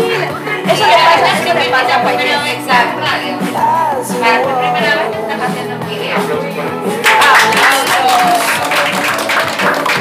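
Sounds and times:
speech: 0.7s - 6.7s
applause: 7.0s - 9.9s
people cheering: 7.0s - 9.9s.

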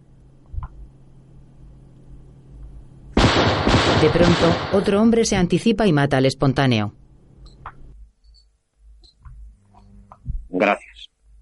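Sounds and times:
gunshot in a western film: 3.2s - 4.9s
speech: 4.0s - 7.0s, 10.6s - 10.9s.

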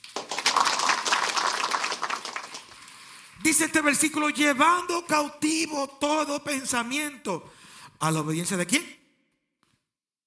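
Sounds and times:
audience applauding: 0.0s - 3.1s
speech: 3.4s - 9.0s.

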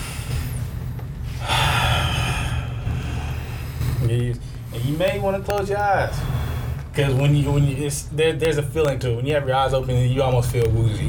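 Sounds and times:
deep breath before a breathing exercise: 0.0s - 5.0s, 6.1s - 6.9s
low hum: 0.0s - 11.0s
speech: 4.2s - 6.4s, 7.0s - 11.0s.

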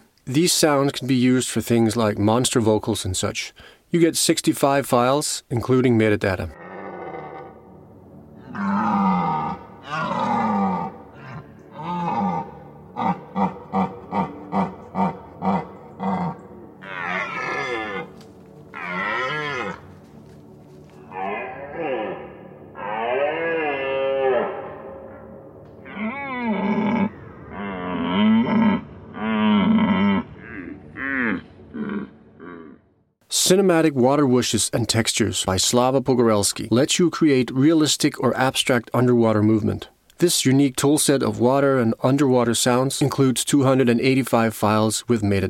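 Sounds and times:
speech: 0.3s - 6.6s, 33.7s - 45.4s
European red deer stags roaring: 6.6s - 7.8s, 8.4s - 19.9s, 21.0s - 25.2s, 25.8s - 32.9s.

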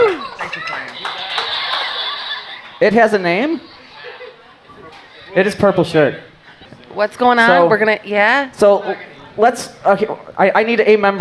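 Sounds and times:
round of applause: 0.0s - 5.1s
laughter: 0.0s - 8.0s
speech: 0.5s - 1.5s, 2.8s - 3.7s, 5.3s - 6.3s, 6.9s - 11.1s.

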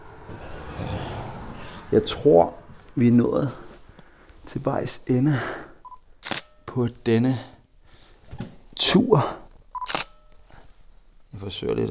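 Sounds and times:
speech: 1.9s - 3.6s, 4.5s - 5.6s, 6.8s - 7.5s, 8.8s - 9.4s, 11.4s - 11.8s
camera electronic focus beep: 5.8s - 6.6s, 9.8s - 10.4s
camera shutter click: 6.2s - 6.6s, 9.8s - 10.2s.

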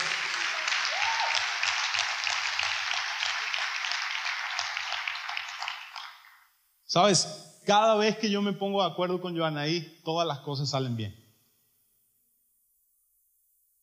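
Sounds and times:
crowd applauding: 0.0s - 6.5s
speech: 6.9s - 11.2s.

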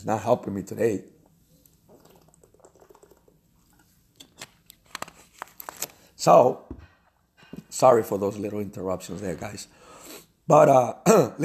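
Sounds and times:
speech: 0.0s - 1.2s, 6.2s - 6.6s, 7.7s - 9.8s, 10.5s - 11.4s
person drinking a sip of water: 1.6s - 3.9s.

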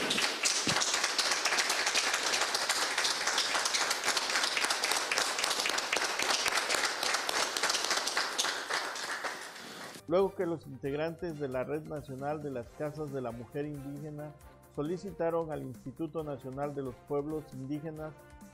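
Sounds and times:
audience applause: 0.0s - 10.0s
speech: 10.1s - 18.5s.

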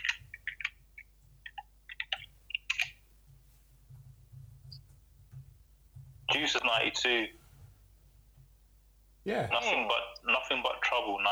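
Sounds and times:
computer keyboard key clicks typing a search: 1.5s - 3.0s
speech: 6.4s - 7.4s, 9.2s - 11.2s.

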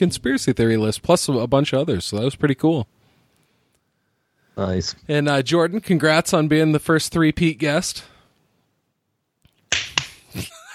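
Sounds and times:
speech: 0.0s - 3.0s, 4.6s - 8.1s, 10.4s - 10.6s
single hand clap: 9.7s - 10.2s.

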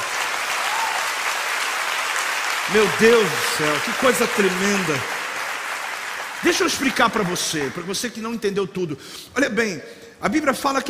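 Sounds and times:
audience applause: 0.0s - 8.3s
speech: 2.7s - 5.2s, 6.4s - 10.8s.

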